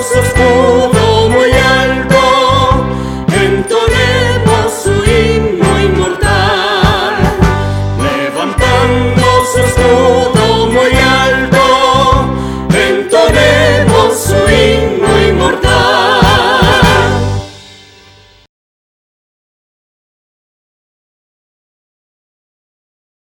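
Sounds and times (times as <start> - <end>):
anthem music: 0.0 - 18.5.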